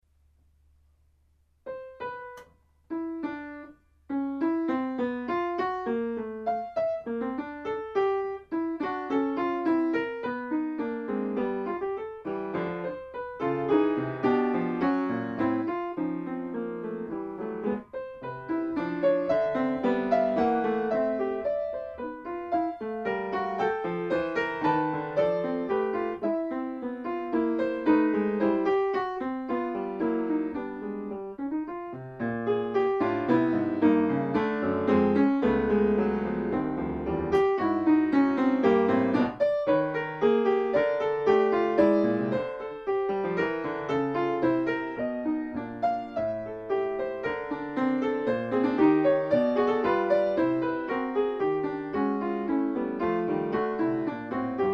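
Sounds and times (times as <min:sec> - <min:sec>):
polyphonic piano piece: 0:01.6 - 0:54.7.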